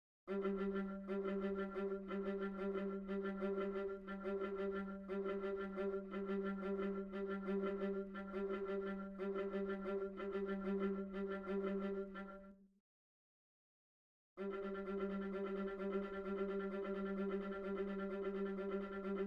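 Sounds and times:
viola: 0:00.3 - 0:12.5, 0:14.4 - 0:19.2.

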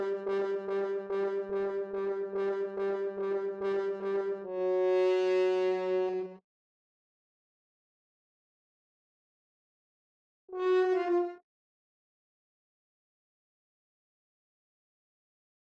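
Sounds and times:
horn: 0:00.0 - 0:06.4, 0:10.5 - 0:11.4.

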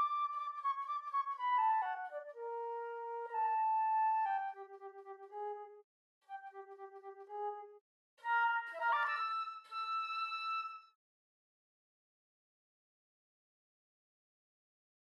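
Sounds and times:
flute: 0:00.0 - 0:11.0.

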